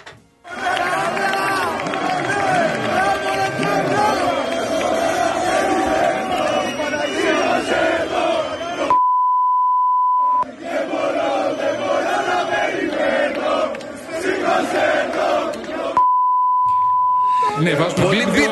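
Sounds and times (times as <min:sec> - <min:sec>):
large crowd chanting in the streets: 0:00.4 - 0:08.9, 0:10.4 - 0:16.0
steady high beep tone: 0:08.9 - 0:10.4, 0:16.0 - 0:17.5.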